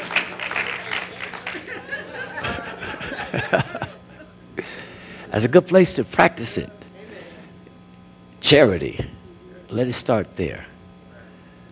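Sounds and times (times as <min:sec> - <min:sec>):
audience applause: 0:00.0 - 0:03.6
laughter: 0:00.0 - 0:04.9
speech: 0:05.4 - 0:06.8, 0:08.5 - 0:10.7.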